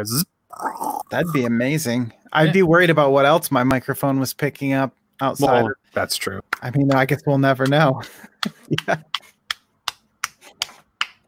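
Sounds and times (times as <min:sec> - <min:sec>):
speech: 0:00.0 - 0:09.2
soul clap: 0:06.5 - 0:11.2.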